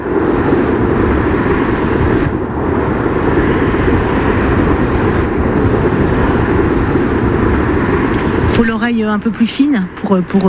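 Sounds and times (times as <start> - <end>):
loud steady low rumble: 0.0 - 10.4
redwing contact calls at night: 0.6 - 1.0, 2.2 - 3.2, 5.1 - 5.6, 7.0 - 7.4, 8.2 - 10.4
speech: 9.3 - 10.4.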